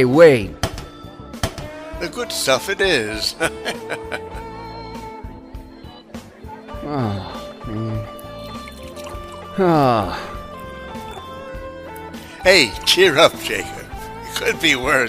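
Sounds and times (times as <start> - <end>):
speech: 0.0 - 0.6, 2.0 - 4.5, 6.9 - 8.1, 9.6 - 10.3, 12.4 - 13.8, 14.4 - 15.0
music: 0.0 - 15.0
laughter: 3.1 - 4.6
vodka poured over ice: 8.2 - 11.3.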